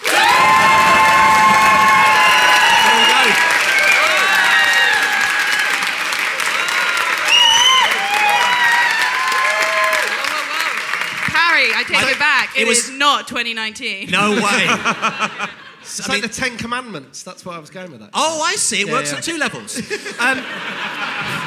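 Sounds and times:
studio audience whoops and shouting voices: 0.0s - 5.9s, 7.0s - 10.6s
studio audience on a comedy panel show clapping to vote: 0.0s - 12.7s, 20.6s - 21.4s
laughter: 10.1s - 11.1s, 14.0s - 16.4s, 18.8s - 21.4s
speech: 12.6s - 21.4s.

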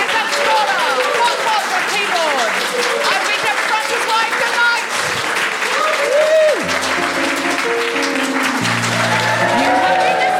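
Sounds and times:
audience applause: 0.0s - 10.3s
sustained musical tones with a sliding pitch: 6.6s - 10.3s.

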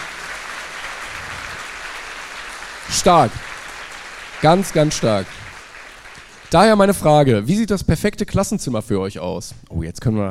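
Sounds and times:
audience applause after someone passes a final state teaching exam: 0.0s - 7.1s
speech: 2.9s - 3.5s, 4.4s - 5.4s, 6.5s - 10.3s.

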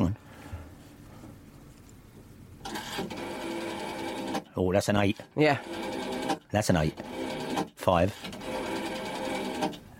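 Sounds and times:
old rotary phone dial whirring and clicking: 2.6s - 9.9s
speech: 4.6s - 5.8s, 6.5s - 8.4s.

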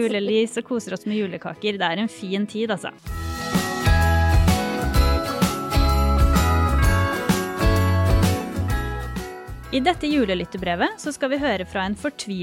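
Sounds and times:
speech: 0.0s - 3.6s, 9.7s - 12.4s
musical backing with deep bass notes and sustained tones: 3.1s - 10.5s
jingling bells: 3.2s - 9.6s.

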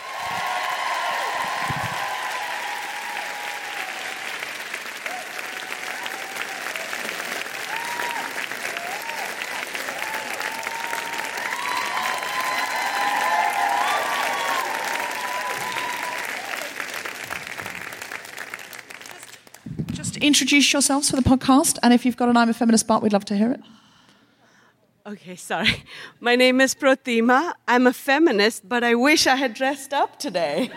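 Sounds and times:
audience applause at a live feminist event: 0.0s - 20.1s
speech: 20.2s - 23.8s, 25.1s - 30.7s.

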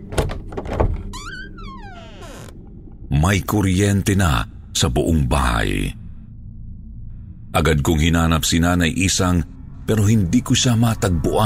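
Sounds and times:
doorknob turning: 0.0s - 2.5s
speech: 3.1s - 6.0s, 7.6s - 11.4s.

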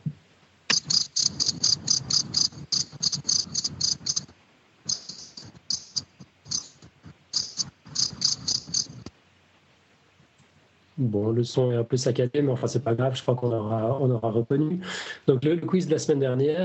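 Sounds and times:
crickets chirping: 0.7s - 9.1s
speech: 11.0s - 16.6s.

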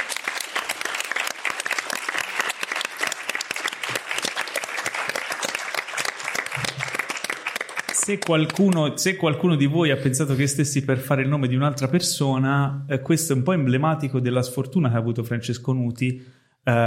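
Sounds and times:
audience applause: 0.0s - 8.9s
speech: 8.1s - 16.8s.

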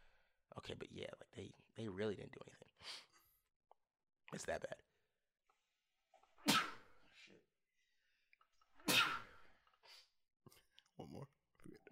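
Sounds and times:
speech: 0.6s - 3.1s, 4.3s - 4.9s, 11.0s - 11.9s
loud explosive sneezes: 6.4s - 7.0s, 8.8s - 9.5s.

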